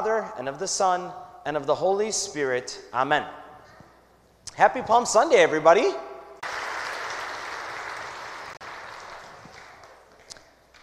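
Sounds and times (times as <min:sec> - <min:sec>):
speech: 0:00.0 - 0:03.4, 0:04.6 - 0:06.1
audience clapping: 0:06.4 - 0:10.8.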